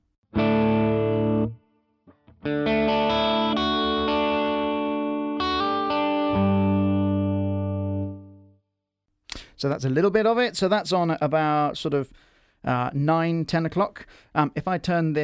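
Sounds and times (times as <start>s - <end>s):
electric guitar through foot-controlled effects pedal: 0.4s - 8.5s
speech: 9.6s - 15.2s.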